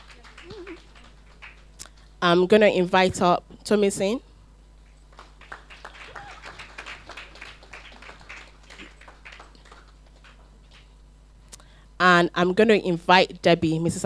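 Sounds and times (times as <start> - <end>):
audience applause: 0.0 - 1.7, 5.1 - 10.9
speech: 2.2 - 4.3, 12.2 - 14.0.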